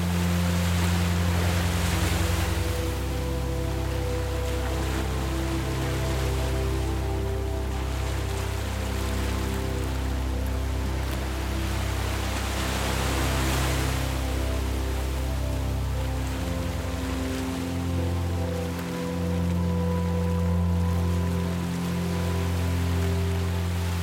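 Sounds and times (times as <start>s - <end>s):
ocean waves meeting the shore: 0.0s - 24.0s
serene ambient soundtrack drone: 0.0s - 24.0s.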